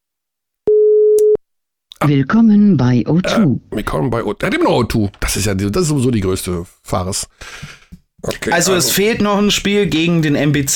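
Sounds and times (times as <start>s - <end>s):
telephone ringing tone on a call: 0.7s - 1.4s
speech: 2.0s - 10.7s.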